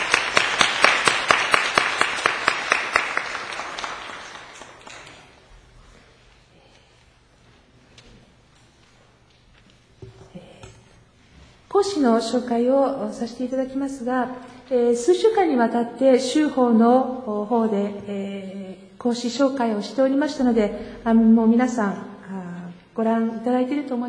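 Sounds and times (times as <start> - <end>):
audience applause welcoming the speaker: 0.0 - 5.4
speech: 11.8 - 22.1, 23.0 - 24.0.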